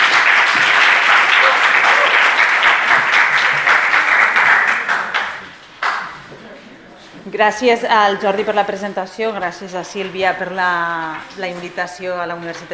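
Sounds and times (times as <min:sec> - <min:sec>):
audience applause: 0:00.0 - 0:06.1
speech: 0:07.4 - 0:12.7.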